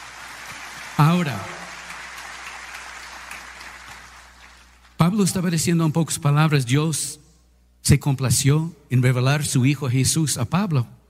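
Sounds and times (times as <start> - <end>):
congregation applauding at a Spanish-language Christmas church service: 0.0 - 5.1
speech: 1.0 - 1.5, 5.2 - 7.2, 7.8 - 11.0.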